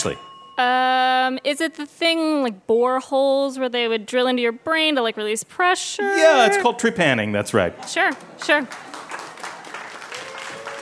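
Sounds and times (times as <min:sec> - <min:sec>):
speech: 0:00.0 - 0:08.9
audience applause: 0:08.2 - 0:10.8.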